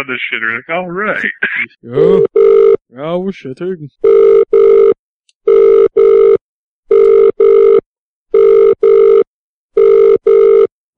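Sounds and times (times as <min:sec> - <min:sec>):
speech: 0:00.0 - 0:04.9
telephone ringing in paired electronic bursts: 0:02.2 - 0:02.8, 0:04.0 - 0:10.7.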